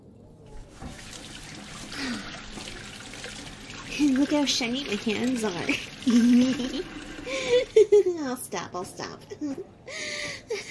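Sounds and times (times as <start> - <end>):
tap water running over hands being washed: 0.6 - 7.8
speech: 4.0 - 10.0.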